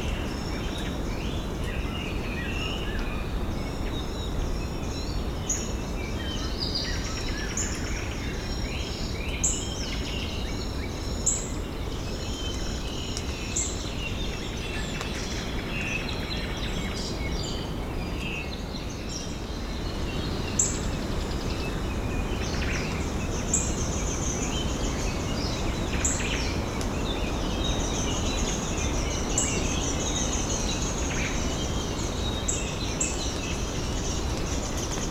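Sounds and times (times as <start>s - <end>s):
wind in a forest: 0.0s - 35.0s.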